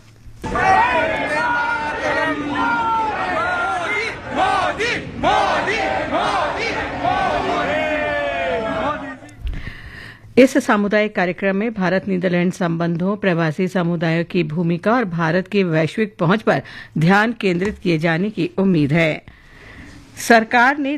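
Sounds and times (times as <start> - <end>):
crowd chanting political slogans: 0.4 - 9.3
speech: 10.4 - 19.4, 20.2 - 20.9.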